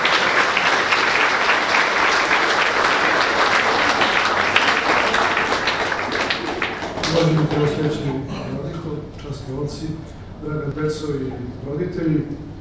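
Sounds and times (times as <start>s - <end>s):
audience applause at an evening school gathering: 0.0s - 8.1s
speech: 7.2s - 8.4s, 9.6s - 12.5s.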